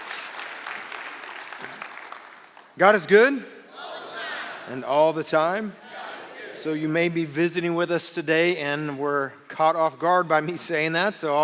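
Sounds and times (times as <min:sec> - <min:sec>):
audience applauding: 0:00.0 - 0:02.8
speech: 0:02.8 - 0:03.6, 0:04.7 - 0:05.8, 0:06.6 - 0:11.4.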